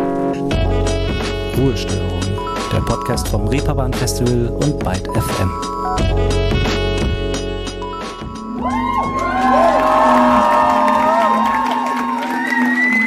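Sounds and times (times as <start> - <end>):
music: 0.0 - 13.0
speech: 1.6 - 6.8
concert crowd at the Reeperbahn Festival cheering with whoops and shouts: 8.5 - 13.0.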